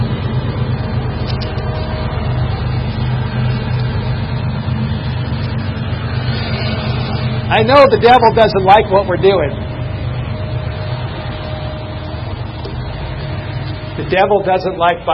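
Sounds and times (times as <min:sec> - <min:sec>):
passing train: 0:00.0 - 0:15.1
speech: 0:07.5 - 0:09.6, 0:14.0 - 0:15.1.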